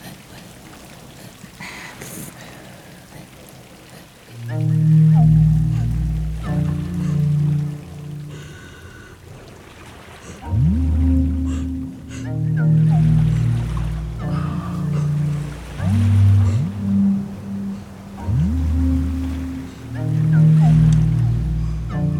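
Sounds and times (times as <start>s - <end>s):
breathing: 0.0s - 4.4s, 6.8s - 10.6s, 11.4s - 12.4s, 14.2s - 15.6s, 16.3s - 16.8s, 21.5s - 22.0s
synthesizer: 4.4s - 8.3s, 10.4s - 22.1s.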